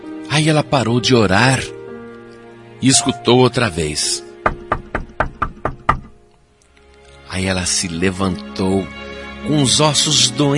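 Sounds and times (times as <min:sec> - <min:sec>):
speech: 0:00.4 - 0:01.8, 0:02.8 - 0:04.3, 0:07.4 - 0:10.5
knocks on the wooden door of a shack: 0:04.4 - 0:06.2.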